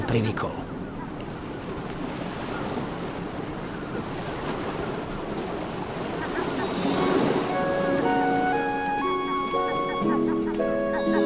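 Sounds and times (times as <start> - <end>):
sea waves washing on the shore: 0.0 - 11.2
sustained tones: 6.5 - 11.2.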